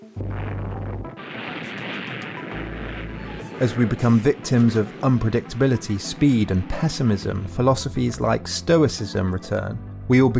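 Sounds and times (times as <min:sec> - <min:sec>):
launch firing at the end of a countdown: 0:00.2 - 0:07.5
speech: 0:03.6 - 0:10.3.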